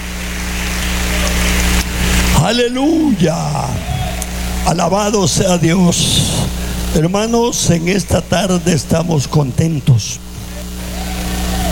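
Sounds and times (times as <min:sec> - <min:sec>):
audience applause: 0:00.4 - 0:05.1, 0:10.8 - 0:11.7
speech: 0:02.5 - 0:03.9, 0:04.6 - 0:10.3.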